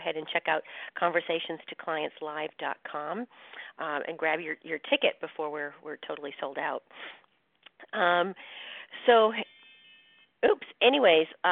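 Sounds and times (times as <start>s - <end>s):
speech: 0.0s - 7.2s, 7.8s - 9.6s, 10.4s - 11.5s
smartphone alarm going off: 9.4s - 10.4s.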